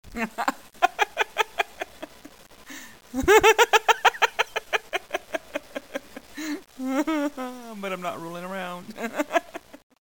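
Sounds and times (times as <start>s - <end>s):
person laughing: 0.1s - 2.4s, 3.1s - 7.4s, 8.9s - 9.8s.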